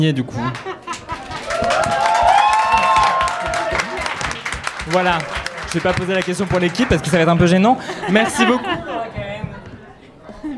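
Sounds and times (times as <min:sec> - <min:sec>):
speech: 0:00.0 - 0:00.8, 0:04.9 - 0:08.9
laughter: 0:00.1 - 0:10.5
audience applause: 0:00.5 - 0:08.2.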